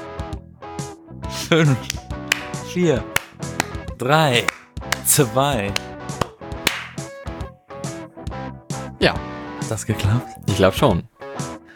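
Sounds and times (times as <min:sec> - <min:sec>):
speech: 0:01.4 - 0:02.0, 0:02.7 - 0:03.2, 0:04.0 - 0:05.9, 0:09.0 - 0:11.1
single hand clap for sync: 0:01.8 - 0:03.8, 0:04.4 - 0:07.2.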